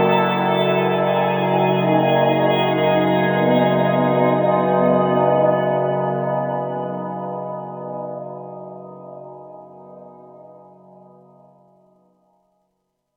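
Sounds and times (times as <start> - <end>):
synth pad: 0.0 - 7.7.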